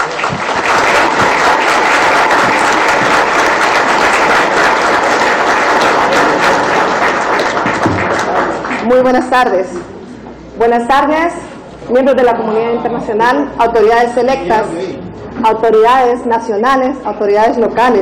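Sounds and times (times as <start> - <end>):
audience applause: 0.0 - 9.1
speech: 8.9 - 9.9, 10.6 - 18.0.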